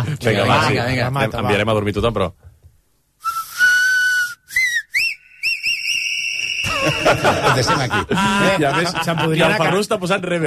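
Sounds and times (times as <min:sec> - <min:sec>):
speech: 0:00.2 - 0:02.4, 0:07.0 - 0:10.4
loud shrill whistle blasts: 0:03.2 - 0:07.2
laughter: 0:06.6 - 0:09.9.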